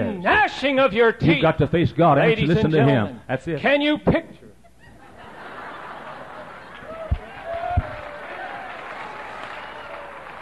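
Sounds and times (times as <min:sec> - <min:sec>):
speech: 0:00.1 - 0:04.4
laughter: 0:04.8 - 0:07.6
audience clapping: 0:06.0 - 0:10.3.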